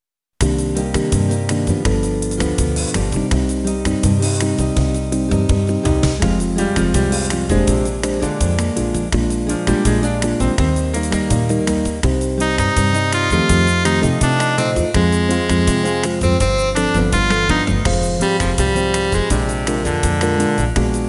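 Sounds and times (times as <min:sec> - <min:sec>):
jazz music: 0:00.4 - 0:21.0.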